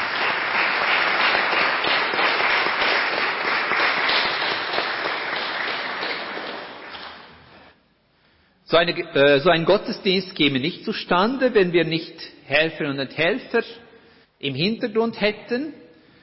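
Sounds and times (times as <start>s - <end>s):
audience applause: 0.0s - 7.4s
speech: 8.7s - 13.8s, 14.4s - 15.8s.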